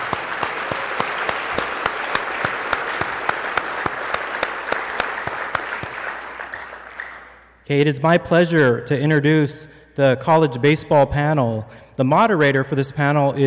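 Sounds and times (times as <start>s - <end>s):
audience applause: 0.0s - 7.4s
speech: 7.7s - 13.4s.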